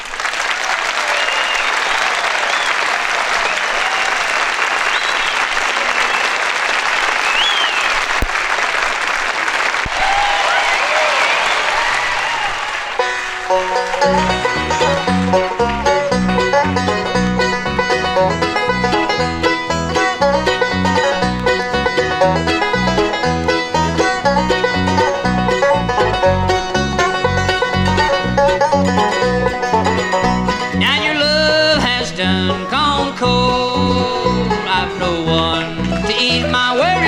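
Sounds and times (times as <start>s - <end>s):
audience applause welcoming performers on stage: 0.0s - 15.9s
bluegrass band music: 11.8s - 37.0s.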